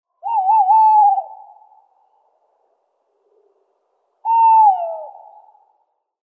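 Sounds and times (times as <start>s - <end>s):
tawny owl hooting: 0.2s - 1.9s, 4.2s - 5.8s.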